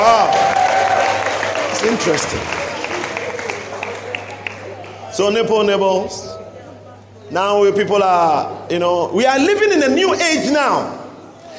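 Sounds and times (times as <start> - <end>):
audience clapping: 0.0 - 5.1
speech: 1.8 - 2.6, 5.2 - 6.3, 7.3 - 11.0.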